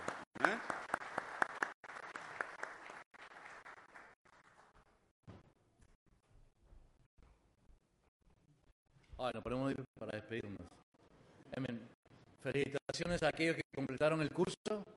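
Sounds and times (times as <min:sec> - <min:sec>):
audience applause: 0:00.0 - 0:04.8
speech: 0:09.2 - 0:10.8, 0:12.4 - 0:14.9.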